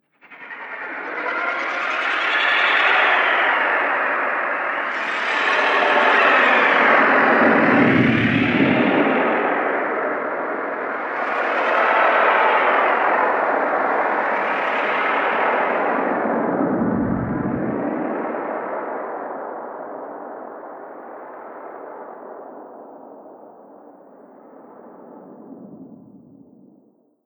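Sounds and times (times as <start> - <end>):
ethereal horror presence ambience: 0.2 - 20.4.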